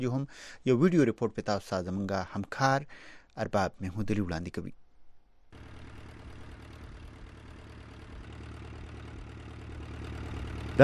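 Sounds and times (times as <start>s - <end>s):
speech: 0.0s - 4.8s
boat engines approaching an island of dogs near Karachi: 5.6s - 10.8s.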